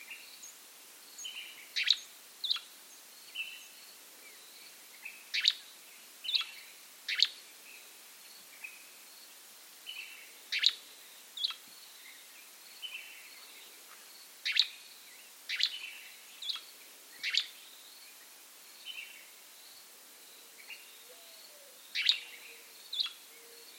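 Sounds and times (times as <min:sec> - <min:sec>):
American grey flycatcher Empidonax wrightii calling: 0:01.2 - 0:02.7, 0:05.0 - 0:07.4, 0:09.9 - 0:10.8, 0:11.4 - 0:12.2, 0:14.4 - 0:14.9, 0:15.5 - 0:17.7, 0:20.6 - 0:23.7.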